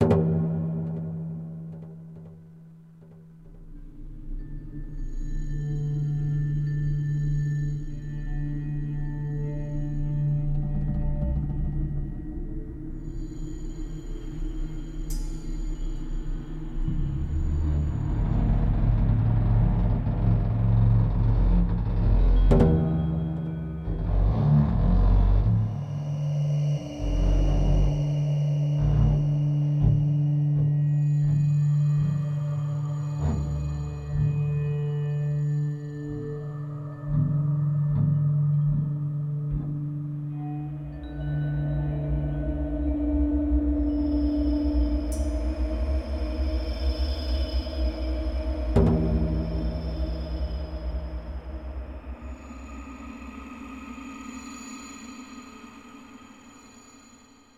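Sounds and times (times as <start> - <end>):
indoor ambience: 0.0 - 57.5.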